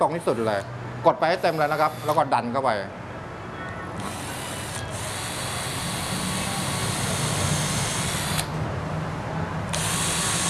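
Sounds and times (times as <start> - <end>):
speech: 0.0 - 3.0
power drill boring into wood: 1.4 - 2.2, 4.0 - 8.5, 9.7 - 10.4.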